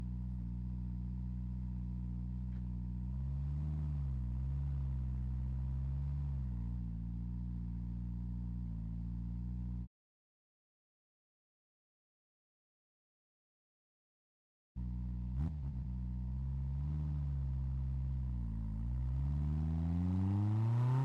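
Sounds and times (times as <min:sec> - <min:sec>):
1985 Peugeot 205 T16 Group B Evo 2 exhaust while driving: 0:00.0 - 0:09.8, 0:14.8 - 0:21.0.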